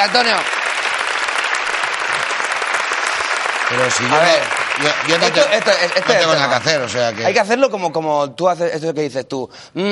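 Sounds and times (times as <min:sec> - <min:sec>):
speech: 0:00.0 - 0:00.6, 0:03.7 - 0:09.9
studio audience applause: 0:00.0 - 0:07.5.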